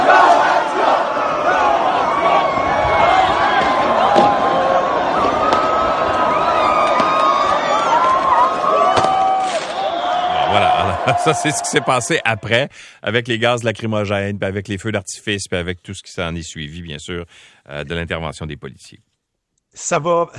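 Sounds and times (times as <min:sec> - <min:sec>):
celebrating hockey crowd chanting and shouting in street: 0:00.0 - 0:12.2
laughter: 0:10.3 - 0:12.7
speech: 0:11.2 - 0:19.1, 0:19.7 - 0:20.3.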